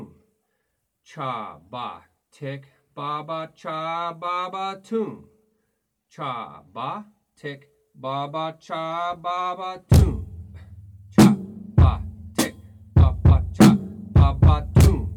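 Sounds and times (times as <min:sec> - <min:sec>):
beat: 0:09.9 - 0:15.1.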